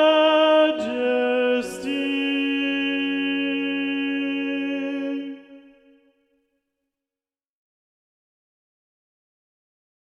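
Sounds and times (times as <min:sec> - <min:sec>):
tenor singing: 0:00.0 - 0:06.0.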